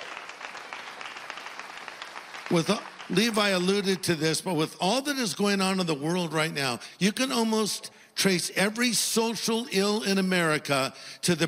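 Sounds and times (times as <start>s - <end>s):
audience applause: 0.0s - 4.1s
speech: 2.5s - 11.4s.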